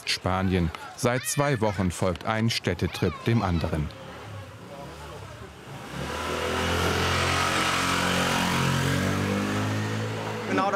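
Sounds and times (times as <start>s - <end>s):
speech: 0.1s - 4.0s
motorcycle passing in narrow city street: 4.0s - 10.7s.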